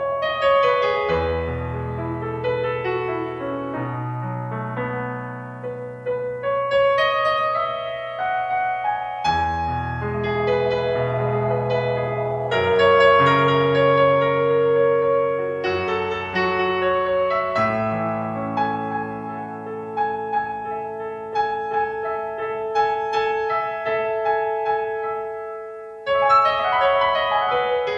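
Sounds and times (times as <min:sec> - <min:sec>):
Bollywood piano melody: 0:00.0 - 0:27.9.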